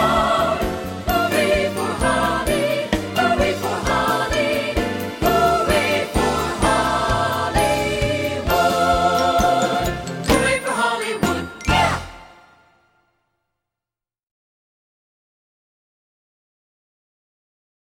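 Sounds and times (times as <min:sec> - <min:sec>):
SATB four-part choir singing: 0:00.0 - 0:12.8.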